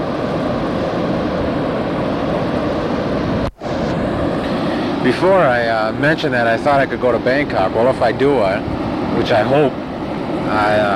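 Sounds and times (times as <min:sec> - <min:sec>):
low-flying airplane buzzing the beach: 0:00.0 - 0:10.9
speech: 0:05.0 - 0:09.8, 0:10.5 - 0:10.9.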